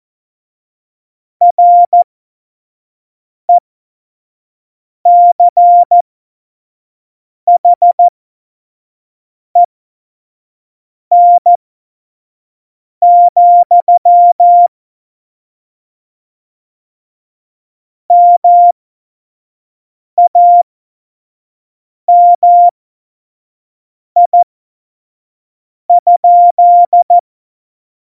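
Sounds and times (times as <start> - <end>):
Morse code course beeps: 1.5 - 2.0, 5.1 - 6.0, 7.5 - 8.1, 11.1 - 11.6, 13.0 - 14.7, 18.1 - 18.7, 20.2 - 20.6, 22.1 - 22.7, 24.2 - 24.4, 25.9 - 27.2.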